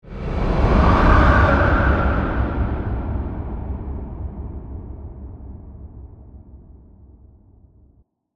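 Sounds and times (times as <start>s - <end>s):
ghostly horror breath whoosh: 0.0s - 4.5s.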